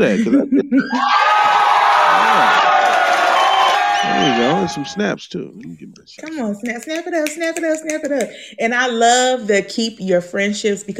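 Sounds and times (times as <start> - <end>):
speech: 0.0 - 1.6, 4.0 - 10.9
laughter: 0.0 - 2.7, 4.0 - 5.2
applause and cheering: 1.1 - 5.0.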